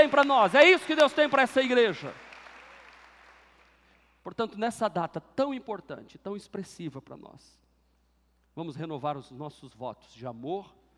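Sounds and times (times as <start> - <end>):
speech: 0.0 - 2.2, 4.2 - 7.6, 8.6 - 10.8
audience applause: 0.0 - 3.8.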